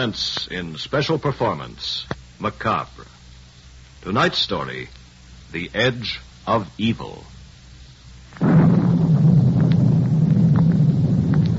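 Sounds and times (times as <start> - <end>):
speech: 0.0 - 3.1, 4.0 - 7.4
thunderstorm: 8.4 - 11.5.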